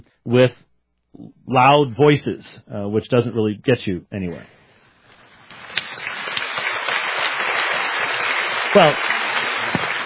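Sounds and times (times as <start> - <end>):
speech: 0.2 - 0.6, 1.2 - 4.6, 8.8 - 9.1
audience applause: 5.5 - 10.0.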